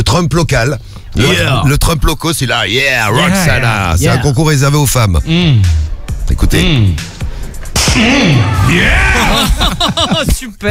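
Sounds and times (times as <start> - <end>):
speech: 0.1 - 7.1, 8.0 - 10.7
person shouting: 1.2 - 1.7, 7.9 - 9.6
spanking slaps on buttocks: 7.7 - 8.4
loud wavering cry: 7.9 - 9.5
laughter: 8.3 - 10.7.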